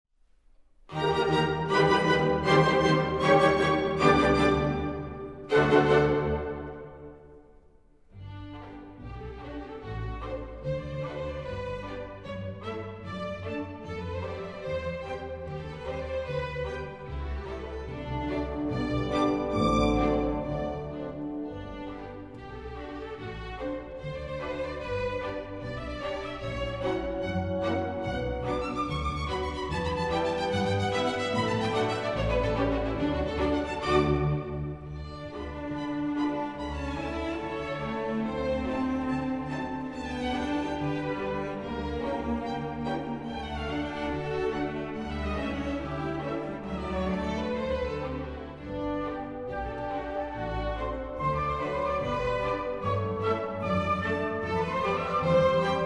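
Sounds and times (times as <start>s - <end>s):
ballet music: 0.9s - 7.6s, 8.2s - 55.8s.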